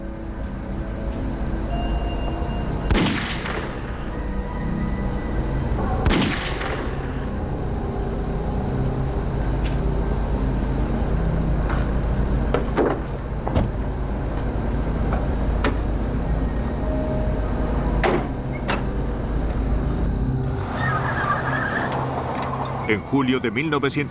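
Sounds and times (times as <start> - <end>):
steady hum: 0.0 - 24.0
gunshots sound effect: 2.9 - 3.8, 6.0 - 6.9
speech: 22.9 - 24.0.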